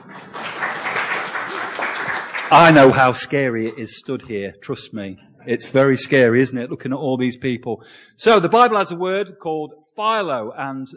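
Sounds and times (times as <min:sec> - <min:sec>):
audience clapping in encouragement: 0:00.0 - 0:03.8
speech: 0:02.5 - 0:10.9.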